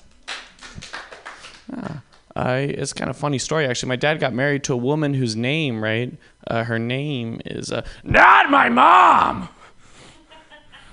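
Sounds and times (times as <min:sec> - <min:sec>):
audience clapping: 0:00.2 - 0:02.3
speech: 0:02.4 - 0:09.6
low whoop: 0:08.1 - 0:09.5.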